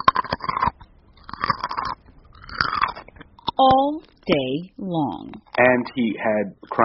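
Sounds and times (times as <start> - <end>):
crunching frozen carrots: 0.0 - 3.6
speech: 3.6 - 6.8.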